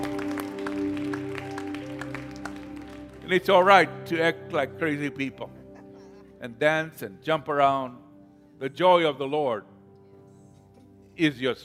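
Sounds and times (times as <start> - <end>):
audience clapping: 0.0 - 3.9
speech: 3.3 - 5.6, 6.4 - 8.0, 8.6 - 9.7, 11.2 - 11.6.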